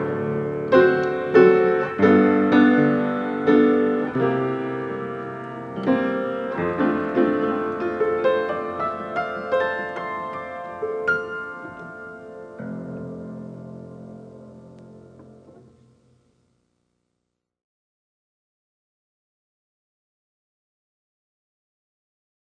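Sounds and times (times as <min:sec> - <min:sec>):
piano: 0:00.0 - 0:16.3.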